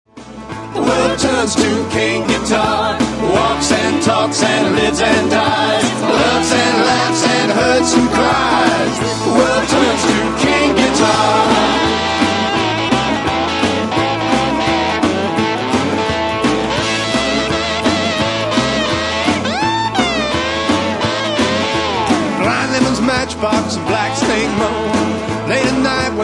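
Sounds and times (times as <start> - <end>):
guitar: 0.1 - 26.2.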